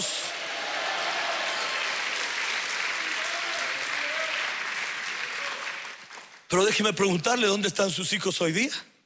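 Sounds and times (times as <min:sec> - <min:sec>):
audience applauding: 0:00.1 - 0:06.8
speech: 0:06.5 - 0:08.9.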